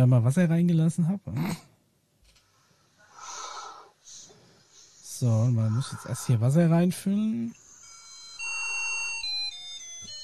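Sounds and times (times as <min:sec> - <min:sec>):
speech: 0:00.0 - 0:01.7, 0:05.2 - 0:07.6
tinny single-voice electronic chip melody in a short jingle loop: 0:05.2 - 0:10.2.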